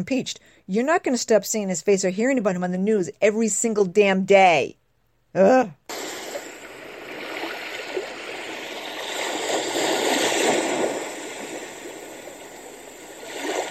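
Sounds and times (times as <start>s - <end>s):
speech: 0.0s - 6.0s
ocean waves: 5.9s - 13.6s.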